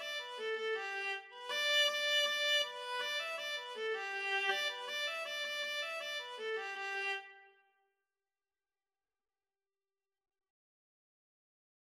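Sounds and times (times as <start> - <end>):
viola duet: 0.0 - 7.4.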